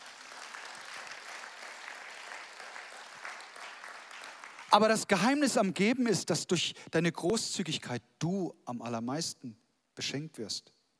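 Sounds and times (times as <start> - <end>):
crowd clapping: 0.0 - 5.1
speech: 4.7 - 10.8.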